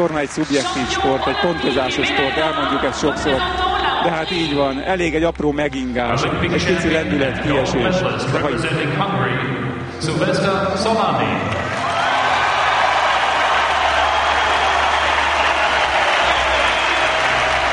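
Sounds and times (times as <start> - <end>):
applause for an Olympic champion: 0.0 - 2.5, 11.6 - 17.7
speech: 0.0 - 11.8.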